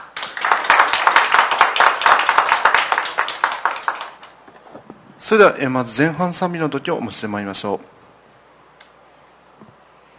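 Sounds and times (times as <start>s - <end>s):
audience clapping: 0.0s - 4.4s
speech: 5.3s - 8.0s.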